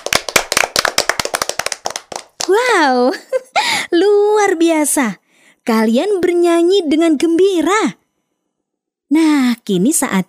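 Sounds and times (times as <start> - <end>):
clapping for children who have just sung a song: 0.0 - 2.7
speech: 2.4 - 3.2, 4.4 - 8.0, 9.1 - 10.2.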